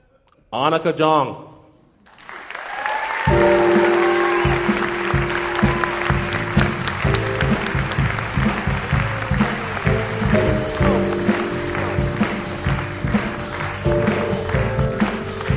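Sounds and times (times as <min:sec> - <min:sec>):
speech: 0:00.5 - 0:01.5
audience applause and cheers welcoming a storyteller on stage: 0:02.1 - 0:15.5
rhythmic musical bed with low repeating bass line: 0:03.3 - 0:15.5.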